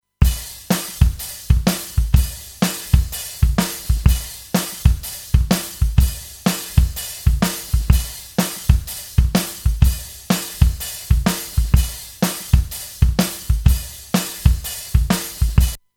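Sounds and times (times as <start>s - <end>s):
Mäag Audio EQ drums: 0.2s - 15.9s.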